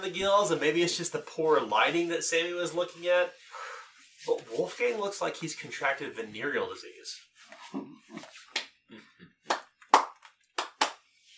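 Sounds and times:
speech: 0:00.0 - 0:03.5, 0:04.2 - 0:08.3
slow clap: 0:08.4 - 0:08.8, 0:09.4 - 0:11.3.

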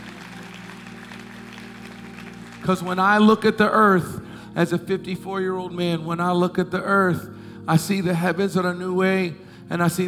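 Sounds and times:
audience clapping: 0:00.0 - 0:03.6
speech: 0:02.6 - 0:10.0.

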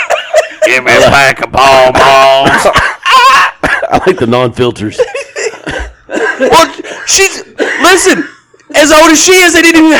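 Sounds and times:
laughter: 0:00.0 - 0:07.0
speech: 0:00.7 - 0:03.0, 0:03.9 - 0:09.9
man coughing: 0:01.9 - 0:04.4, 0:05.0 - 0:08.5.

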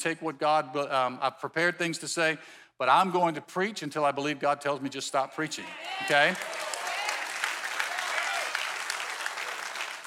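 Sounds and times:
speech: 0:00.0 - 0:06.7
audience clapping: 0:05.8 - 0:10.0.

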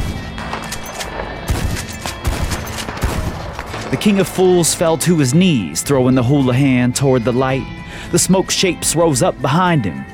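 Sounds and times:
rapid gunfire shots: 0:00.0 - 0:05.4
speech: 0:03.9 - 0:10.1.

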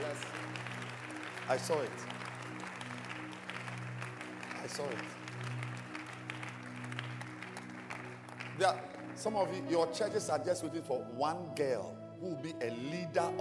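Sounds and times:
audience clapping: 0:00.0 - 0:10.4
speech: 0:01.5 - 0:02.2, 0:04.7 - 0:05.5, 0:08.6 - 0:13.3.

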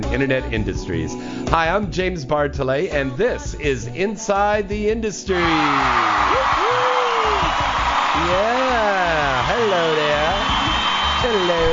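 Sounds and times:
speech: 0:00.1 - 0:06.6, 0:08.2 - 0:10.2
audience applause: 0:05.4 - 0:11.7.

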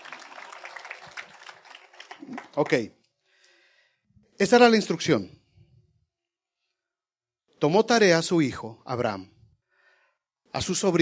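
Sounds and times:
faint applause from a Spanish-speaking church class: 0:00.0 - 0:02.8
speech: 0:02.2 - 0:03.0, 0:04.4 - 0:05.4, 0:07.6 - 0:09.4, 0:10.5 - 0:11.0.

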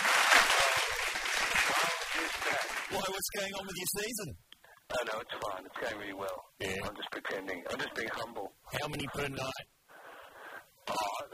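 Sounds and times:
applause: 0:00.0 - 0:03.2
speech: 0:02.5 - 0:09.7.

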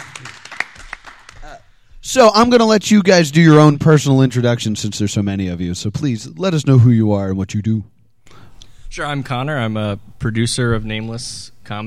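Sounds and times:
clapping: 0:00.0 - 0:01.6
speech: 0:02.0 - 0:08.0, 0:09.0 - 0:11.8.

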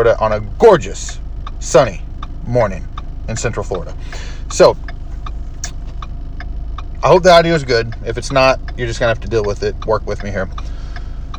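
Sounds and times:
speech: 0:00.0 - 0:04.9, 0:07.0 - 0:10.7
car turn signal clicking at an intersection in Orlando Florida: 0:00.0 - 0:11.3.

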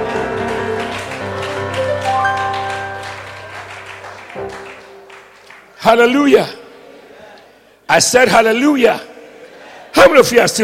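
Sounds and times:
audience clapping: 0:00.0 - 0:06.2
speech: 0:05.8 - 0:06.6, 0:07.9 - 0:09.1, 0:10.0 - 0:10.6.

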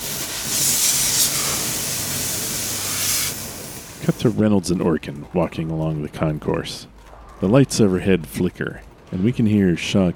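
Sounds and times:
fire extinguisher spraying: 0:00.0 - 0:04.3
speech: 0:04.0 - 0:10.1.

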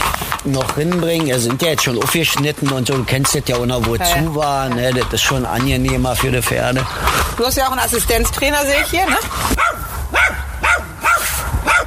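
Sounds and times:
speech: 0:00.4 - 0:09.6
Jack Russell terrier barking: 0:09.1 - 0:11.8.

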